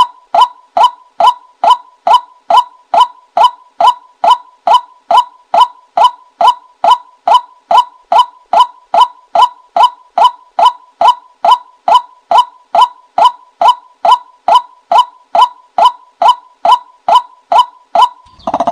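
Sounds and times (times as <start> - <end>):
white-breasted waterhen hollow calls: 0.0 - 18.7.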